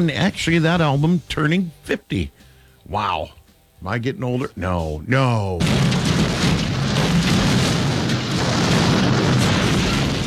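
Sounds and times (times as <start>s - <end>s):
speech: 0.0s - 6.0s
air conditioner breaking down with a boom: 5.6s - 10.2s.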